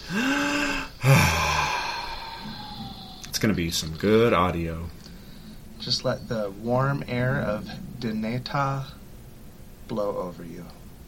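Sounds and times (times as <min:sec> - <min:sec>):
several people taking a deep breath together and sighing: 0:00.0 - 0:03.3
speech: 0:03.4 - 0:05.0, 0:05.8 - 0:09.0, 0:09.9 - 0:10.8.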